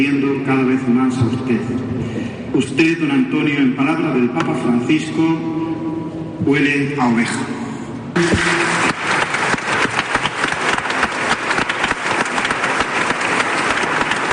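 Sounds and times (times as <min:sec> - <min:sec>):
speech: 0:00.0 - 0:05.7, 0:06.4 - 0:07.6, 0:08.2 - 0:08.6
crowd applauding for a bishop in the sacristy: 0:08.2 - 0:14.3.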